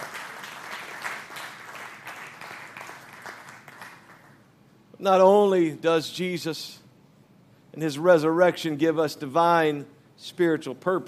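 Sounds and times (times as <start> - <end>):
audience clapping hands in praise: 0.0 - 4.4
speech: 5.0 - 6.8, 7.8 - 11.0.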